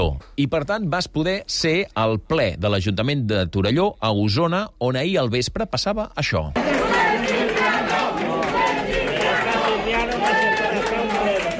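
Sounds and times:
speech: 0.0 - 7.4
protesters shouting at a council meeting: 6.6 - 11.5.

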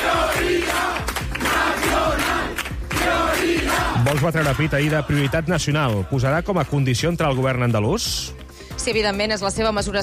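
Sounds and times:
large crowd chanting a political slogan: 0.0 - 6.2
speech: 4.1 - 10.0.

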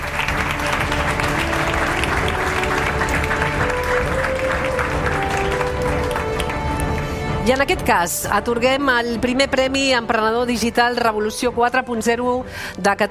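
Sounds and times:
audience applause: 0.0 - 7.5
speech: 7.5 - 13.0.

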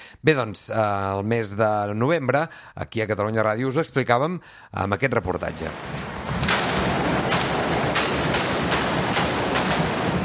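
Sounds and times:
speech: 0.2 - 6.1
firecrackers exploding at a correfoc: 5.7 - 10.2.

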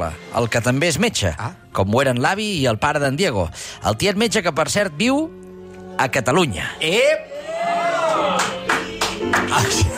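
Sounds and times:
speech: 0.0 - 5.4, 6.0 - 7.8, 9.5 - 9.9
busy crowd-like background: 7.0 - 9.9
people applauding: 7.7 - 9.9.

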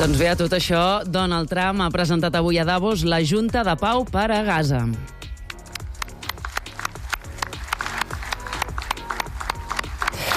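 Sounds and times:
speech: 0.0 - 5.2
scattered unenthusiastic handclaps from a modest group: 5.4 - 10.3.

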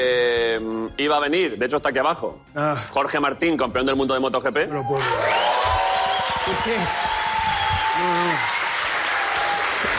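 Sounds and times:
speech: 0.0 - 5.8, 6.5 - 7.2, 8.0 - 8.5
audience applause: 5.0 - 9.9.

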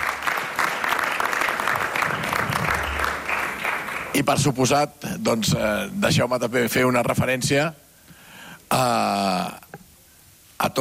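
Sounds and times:
audience applause: 0.0 - 4.6
speech: 4.2 - 7.8, 8.7 - 9.5.

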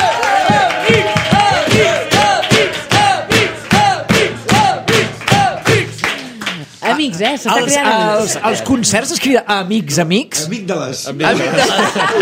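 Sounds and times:
concert crowd applauding: 0.0 - 8.0
speech: 7.2 - 12.2
laughter: 11.2 - 12.2.

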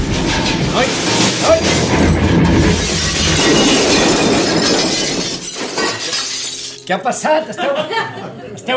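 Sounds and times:
car crash: 0.0 - 6.8
breaking glass in a car crash: 0.0 - 6.9
speech: 6.9 - 8.7
laughter: 7.5 - 8.7.

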